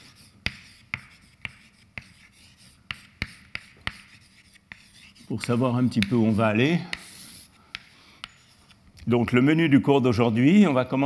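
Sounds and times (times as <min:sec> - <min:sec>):
marker or chalk strokes on a board during a lecture: 0:00.0 - 0:08.8
speech: 0:05.3 - 0:07.0, 0:09.1 - 0:11.0.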